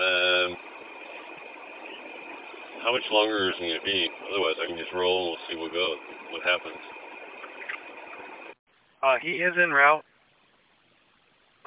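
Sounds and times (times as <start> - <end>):
bus engine just started and idling: 0.0 - 8.6
speech: 2.8 - 7.0, 9.0 - 10.1.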